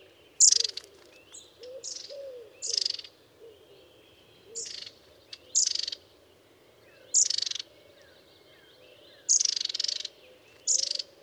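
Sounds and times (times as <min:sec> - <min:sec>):
long-tailed tit rattling trill: 0:00.4 - 0:03.1, 0:04.6 - 0:06.0, 0:09.3 - 0:11.1.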